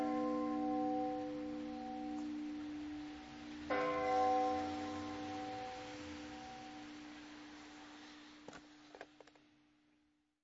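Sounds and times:
bells ringing: 0.0 - 7.4.

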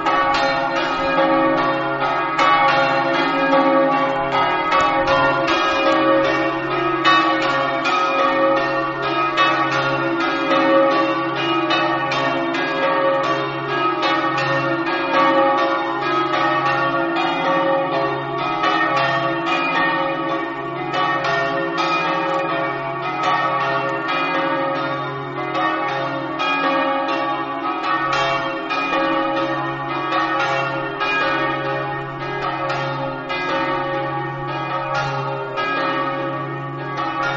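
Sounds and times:
church bells ringing in Pontebba: 0.0 - 37.3.

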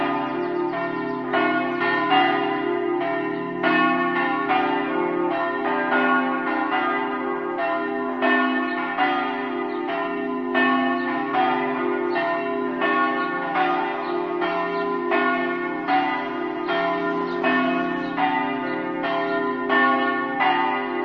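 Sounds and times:
church bells in Martignacco: 0.0 - 21.0.

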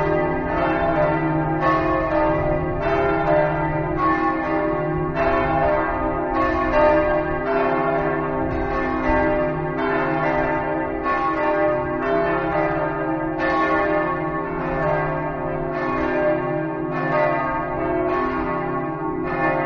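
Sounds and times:
church bells ringing in Cividale: 0.0 - 19.6.

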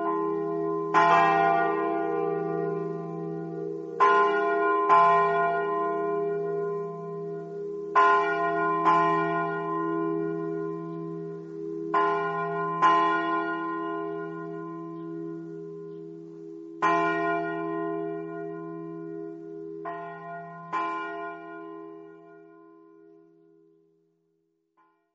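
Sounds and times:
bells ringing: 0.0 - 22.6.

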